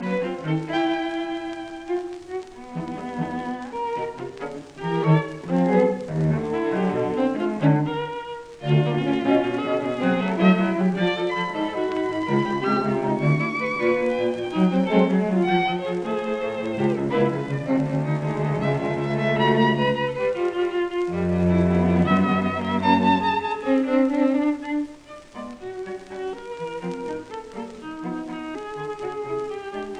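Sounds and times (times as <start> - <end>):
string quartet playing a moderately fast intermezzo: 0.0 - 29.9.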